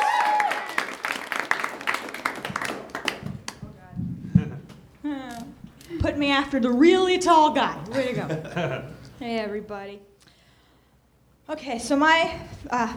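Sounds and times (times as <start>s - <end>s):
audience applauding: 0.0s - 3.7s
speech: 6.0s - 10.1s, 11.5s - 12.9s
laughter: 7.7s - 9.2s.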